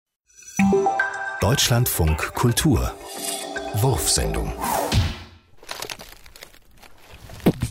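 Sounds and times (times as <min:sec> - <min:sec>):
speech: 0:01.4 - 0:05.0
footsteps crunching on litter: 0:05.5 - 0:07.6.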